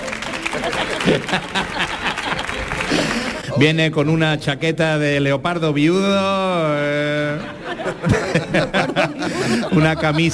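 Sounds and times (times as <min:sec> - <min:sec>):
audience applause: 0:00.0 - 0:03.5
laughter: 0:00.2 - 0:03.8, 0:06.9 - 0:10.3
speech: 0:00.6 - 0:02.1, 0:02.9 - 0:10.3.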